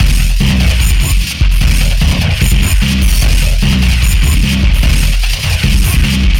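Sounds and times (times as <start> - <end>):
jungle drum loop: 0.0 - 6.3.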